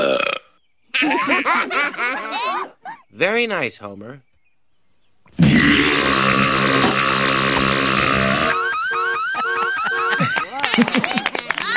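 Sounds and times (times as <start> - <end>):
loud belch: 0.0 - 0.6, 5.4 - 8.6
laughter: 1.0 - 3.0, 9.1 - 11.7
speech: 1.5 - 4.3.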